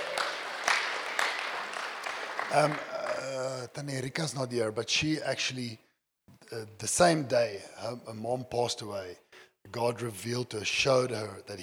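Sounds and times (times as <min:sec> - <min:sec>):
crowd clapping: 0:00.0 - 0:03.6
speech: 0:02.5 - 0:05.8, 0:06.5 - 0:11.6.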